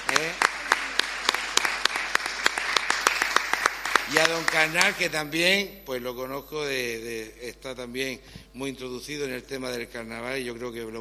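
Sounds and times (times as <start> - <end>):
scattered audience applause at a carnival event: 0.0 - 5.4
speech: 4.1 - 10.9.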